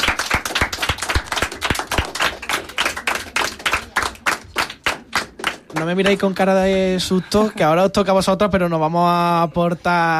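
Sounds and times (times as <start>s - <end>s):
class of children applauding: 0.0s - 6.3s
speech: 5.7s - 10.1s.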